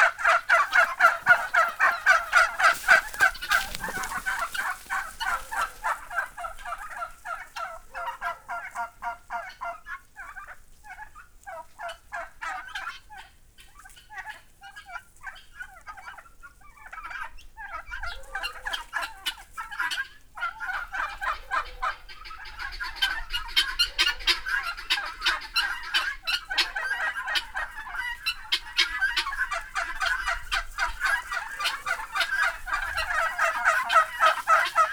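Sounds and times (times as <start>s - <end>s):
turkey cock gobbling in a farmyard: 0.0s - 9.6s, 23.8s - 34.9s
guinea fowl calling in a farmyard: 0.0s - 14.3s, 17.1s - 34.9s.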